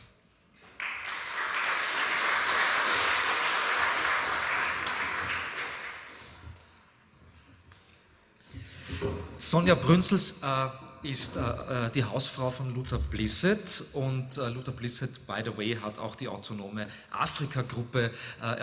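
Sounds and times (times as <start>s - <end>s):
crowd applause: 0.6s - 6.4s
speech: 9.5s - 18.6s.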